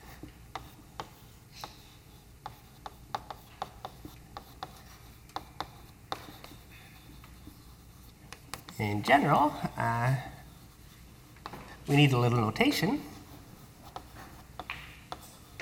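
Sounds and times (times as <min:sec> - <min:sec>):
handwriting notes: 0:00.0 - 0:15.6
speech: 0:08.8 - 0:10.3, 0:11.9 - 0:13.1.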